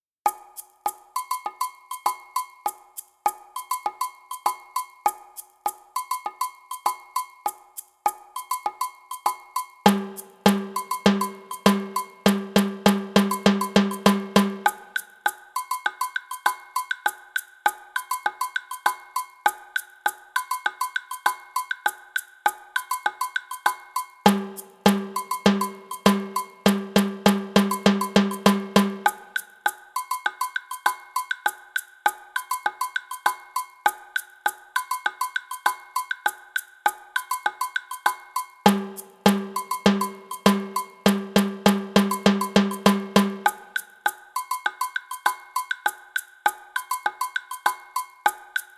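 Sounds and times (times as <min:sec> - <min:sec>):
instrumental music: 0:00.2 - 0:48.7.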